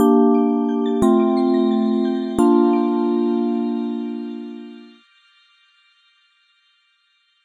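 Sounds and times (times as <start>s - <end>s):
retry jingle: 0.0s - 5.0s.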